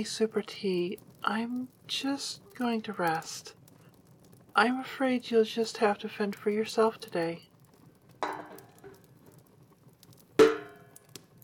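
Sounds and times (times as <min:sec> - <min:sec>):
speech: 0:00.0 - 0:03.6, 0:04.6 - 0:07.5
cooking pot clattering: 0:08.2 - 0:09.1, 0:10.4 - 0:11.1.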